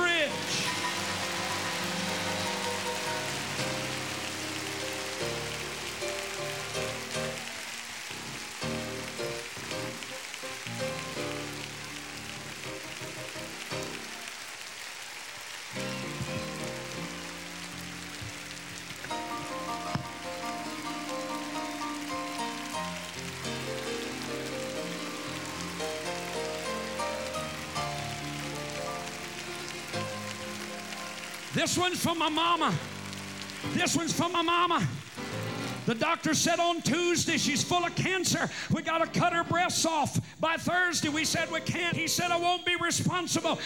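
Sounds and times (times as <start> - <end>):
audience clapping hands: 0.0 - 36.0
speech: 31.6 - 32.9, 33.8 - 34.9, 35.9 - 43.6.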